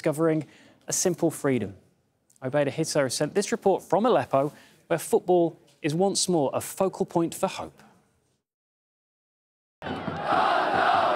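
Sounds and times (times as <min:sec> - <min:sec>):
speech: 0:00.0 - 0:01.8, 0:02.4 - 0:07.9
football fans cheering: 0:09.8 - 0:11.1.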